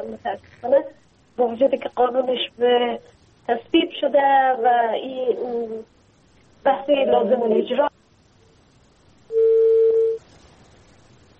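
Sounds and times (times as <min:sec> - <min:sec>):
speech: 0:00.0 - 0:06.0, 0:06.6 - 0:07.9
electronic telephone line tone as a phone call disconnects: 0:09.3 - 0:10.2.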